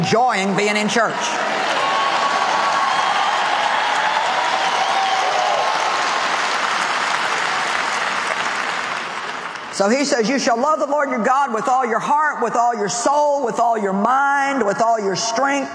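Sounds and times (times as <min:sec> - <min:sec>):
speech: 0:00.1 - 0:01.6, 0:09.8 - 0:15.7
church audience clapping: 0:01.4 - 0:10.0.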